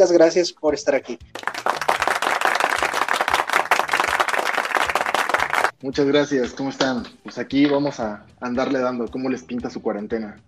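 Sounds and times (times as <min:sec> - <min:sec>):
speech: 0:00.0 - 0:01.5, 0:05.8 - 0:10.4
audience applauding an arriving guest: 0:01.4 - 0:05.7.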